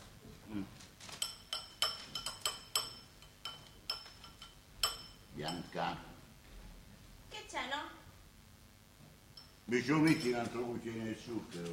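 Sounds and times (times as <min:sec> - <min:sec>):
speech: 0:00.5 - 0:00.9, 0:05.4 - 0:06.1, 0:09.7 - 0:11.7
dishes clinking while being washed: 0:01.1 - 0:05.8, 0:09.4 - 0:10.6.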